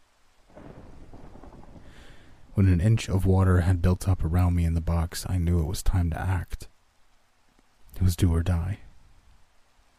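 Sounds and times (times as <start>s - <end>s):
rain falling: 0.0s - 9.9s
thunder rumbling: 0.5s - 5.2s
speech: 2.6s - 6.7s, 8.0s - 8.8s.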